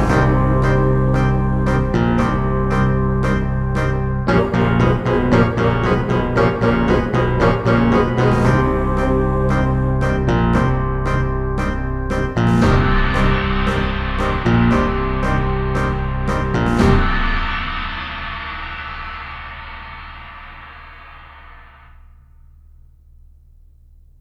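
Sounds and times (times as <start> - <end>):
fascist tango music: 0.0 - 17.6.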